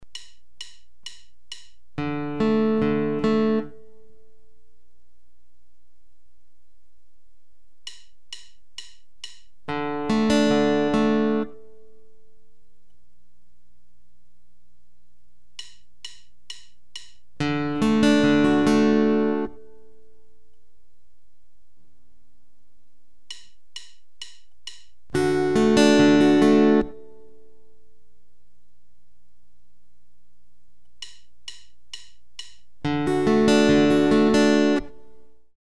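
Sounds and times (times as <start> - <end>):
fingerpicked guitar: 1.1 - 4.6, 9.6 - 12.4, 17.4 - 20.4, 25.1 - 27.8, 32.4 - 35.5.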